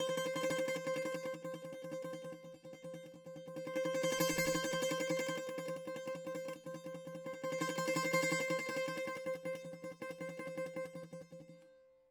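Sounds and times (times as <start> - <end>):
bouzouki: 0.0 - 11.7.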